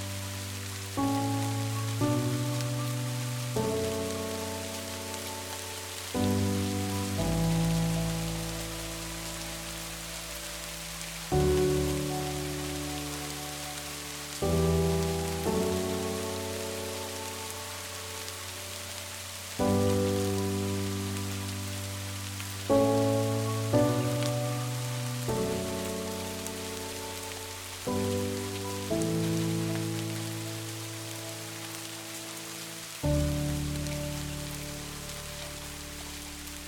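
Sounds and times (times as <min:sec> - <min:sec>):
soft piano playing slow sustained chords: 0:00.0 - 0:36.6
steady hiss of rain: 0:00.0 - 0:36.6.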